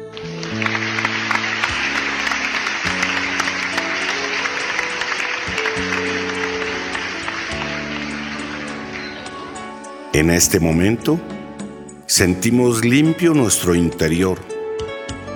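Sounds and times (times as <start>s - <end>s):
low sustained musical tones: 0.0s - 10.2s
group applauding themselves: 0.0s - 10.4s
speech: 10.2s - 11.4s, 12.1s - 14.5s.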